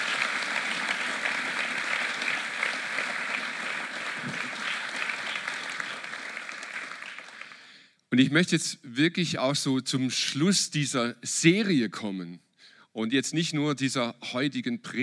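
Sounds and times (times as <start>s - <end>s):
crowd applauding: 0.0s - 7.8s
speech: 8.2s - 12.4s, 13.0s - 15.0s.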